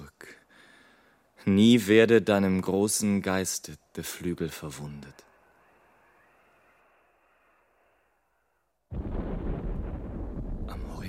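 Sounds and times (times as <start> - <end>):
speech: 1.4 - 5.3
distant thunder rumbling: 8.9 - 11.0.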